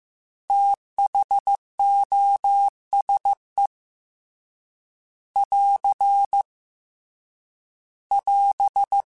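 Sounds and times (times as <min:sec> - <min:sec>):
Morse code beeps: 0:00.5 - 0:03.7, 0:05.4 - 0:06.5, 0:08.1 - 0:09.1.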